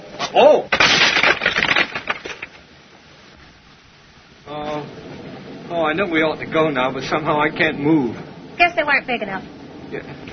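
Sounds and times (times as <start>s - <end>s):
speech: 0.3s - 0.8s, 5.8s - 10.3s
pebbles thrown against a window: 0.3s - 2.6s.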